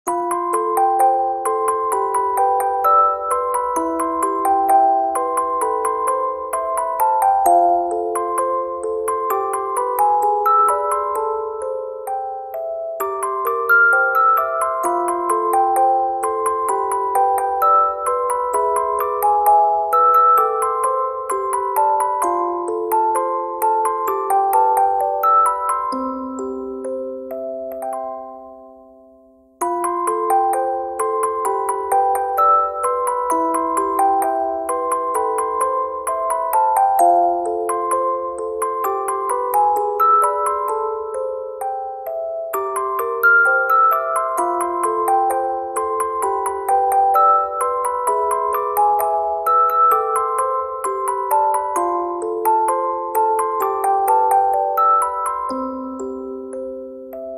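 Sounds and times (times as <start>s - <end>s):
music box: 0.1s - 57.3s.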